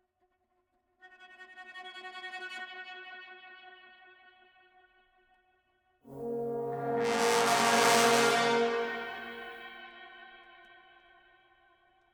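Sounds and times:
combat music loop: 6.1 - 9.4.

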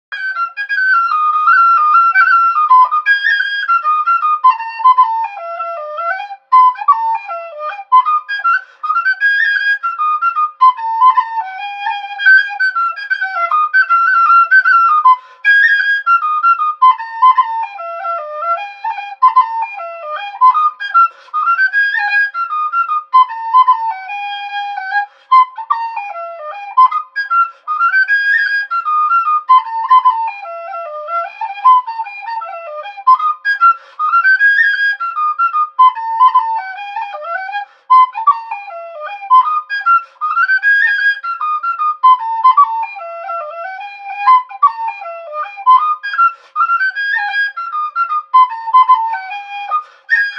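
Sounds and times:
wind instrument: 0.1 - 50.3.

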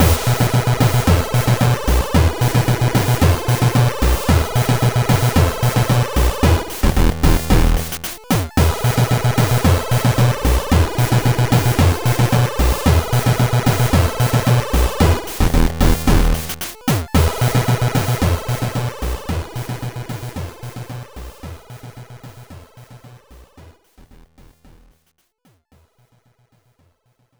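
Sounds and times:
dance music: 0.0 - 21.3.

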